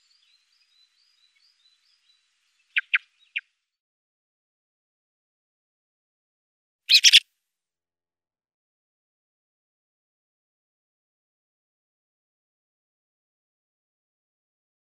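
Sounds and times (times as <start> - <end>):
song thrush singing in Iran: 0.0 - 3.5, 6.9 - 7.2.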